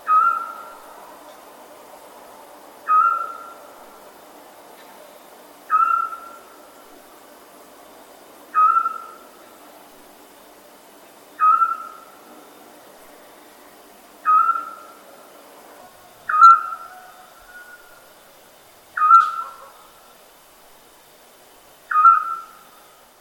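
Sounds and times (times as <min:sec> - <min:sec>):
owl calling: 0:00.0 - 0:00.9, 0:02.8 - 0:03.7, 0:05.7 - 0:06.6, 0:08.5 - 0:09.4, 0:11.4 - 0:12.2, 0:14.2 - 0:15.0, 0:16.1 - 0:18.1, 0:18.9 - 0:20.1, 0:21.9 - 0:23.0.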